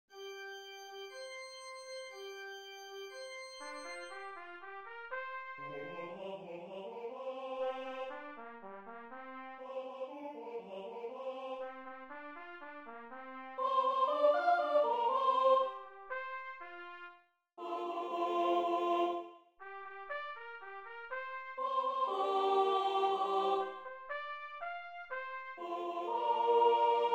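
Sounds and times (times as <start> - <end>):
alto voice singing: 5.6 - 8.2, 13.6 - 15.9, 17.6 - 19.3, 21.6 - 23.9, 25.6 - 27.1.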